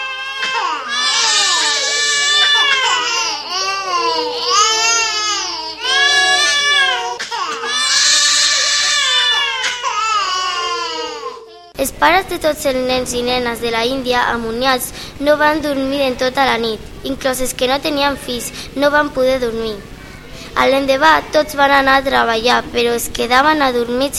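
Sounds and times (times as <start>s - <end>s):
many children crying as a story sound effect: 0.0s - 11.8s
speech: 11.9s - 19.9s, 20.6s - 24.1s.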